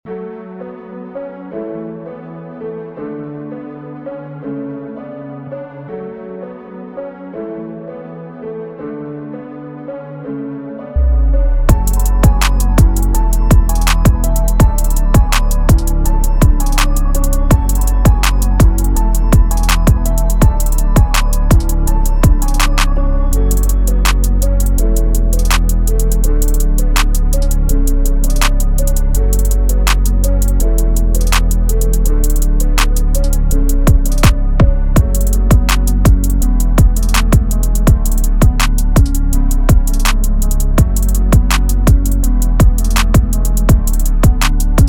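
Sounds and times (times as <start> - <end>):
music beat: 11.0 - 44.8.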